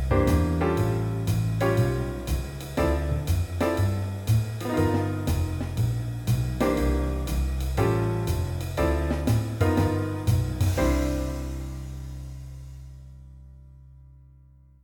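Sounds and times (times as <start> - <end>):
jazz piano play-along blues in C at 120 bpm: 0.0 - 14.2.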